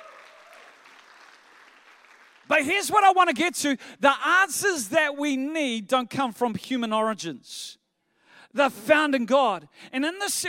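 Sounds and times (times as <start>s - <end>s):
audience applause: 0.0s - 2.5s
speech: 2.5s - 7.8s, 8.5s - 10.4s.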